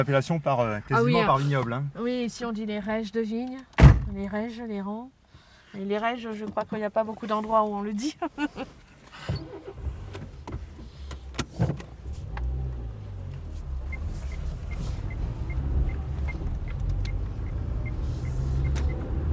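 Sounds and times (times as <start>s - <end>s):
speech: 0.0s - 9.8s
large farm machine's diesel engine rumbling, crossing the road: 9.2s - 19.3s.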